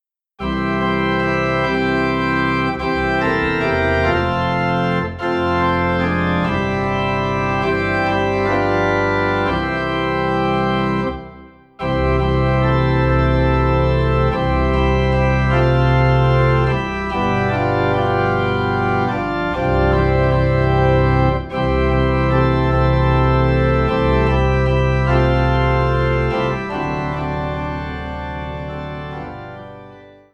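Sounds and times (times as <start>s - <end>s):
low organ note in C: 0.4s - 30.2s.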